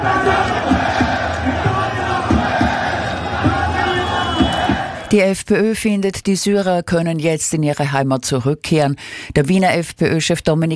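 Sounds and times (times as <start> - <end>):
scattered cries: 0.0 - 5.1
street demonstration crowd shouting and chanting: 0.0 - 5.2
speech: 5.1 - 10.7.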